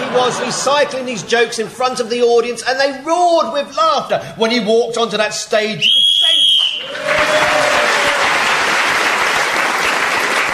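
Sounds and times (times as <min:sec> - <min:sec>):
laughter: 0:00.0 - 0:01.6
speech: 0:00.1 - 0:07.8
whistle blown to end the round: 0:05.8 - 0:07.0
crowd applause: 0:06.2 - 0:10.5.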